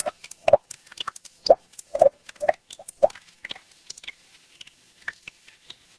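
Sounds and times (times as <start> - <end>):
water dripping: 0.0 - 0.6, 1.4 - 4.2.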